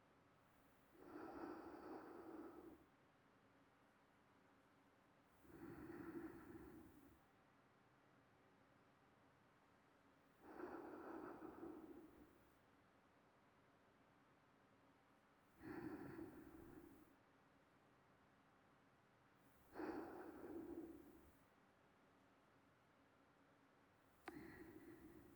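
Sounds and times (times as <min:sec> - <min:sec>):
sleeping breathing: 0:01.0 - 0:02.9, 0:05.4 - 0:07.1, 0:10.4 - 0:12.4, 0:15.6 - 0:17.0, 0:19.8 - 0:21.3, 0:24.3 - 0:25.3.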